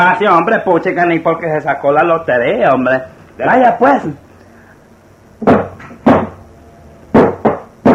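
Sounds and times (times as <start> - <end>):
speech: 0.0 - 4.2
heavy hammer blows striking a stuck door: 5.4 - 6.4, 7.1 - 7.9.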